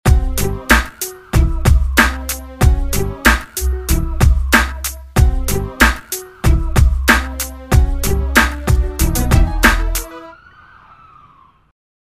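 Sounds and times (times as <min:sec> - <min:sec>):
bass line at 94 bpm: 0:00.1 - 0:00.7, 0:01.4 - 0:05.9, 0:06.5 - 0:10.1.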